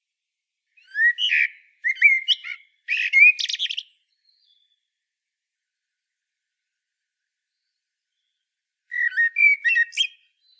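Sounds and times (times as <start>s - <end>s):
Common blackbird song: 0.7s - 5.0s, 7.4s - 10.5s.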